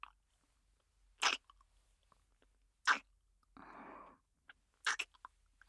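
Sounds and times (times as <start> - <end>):
welcome-home kiss lip smacks: 1.2 - 1.4, 4.8 - 5.1.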